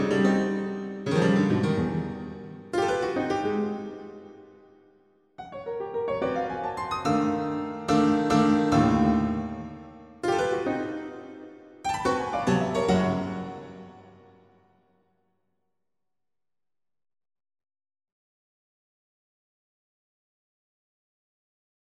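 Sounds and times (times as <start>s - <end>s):
piano scherzo: 0.0s - 4.6s, 5.4s - 14.4s.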